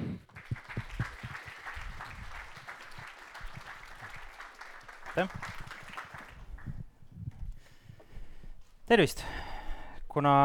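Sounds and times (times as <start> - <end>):
audience applause: 0.2 - 6.8
speech: 5.2 - 5.6, 8.9 - 9.5, 10.1 - 10.4.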